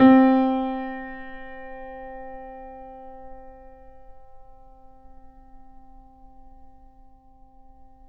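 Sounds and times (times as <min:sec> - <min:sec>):
grand piano C6 note: 0:00.0 - 0:03.8.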